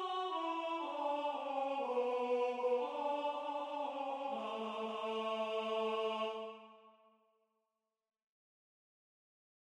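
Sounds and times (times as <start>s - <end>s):
alto singing a hymn: 0.0s - 6.6s.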